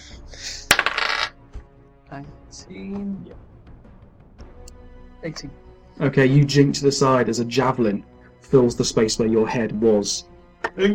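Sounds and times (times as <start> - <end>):
dice rolling on a hard surface: 0.7 - 1.3
speech: 2.1 - 3.6, 5.2 - 10.9.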